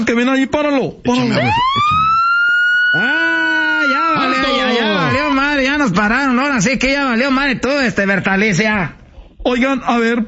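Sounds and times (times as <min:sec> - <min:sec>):
speech: 0:00.0 - 0:02.1, 0:02.9 - 0:03.3, 0:05.1 - 0:10.2
loud police siren wailing: 0:01.1 - 0:05.6.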